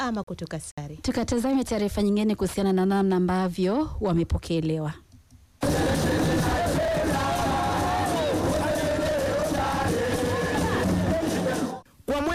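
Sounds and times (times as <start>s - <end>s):
speech: 0.0s - 5.0s
football fans cheering and shouting to welcome the Serengeti Boys: 5.6s - 11.8s.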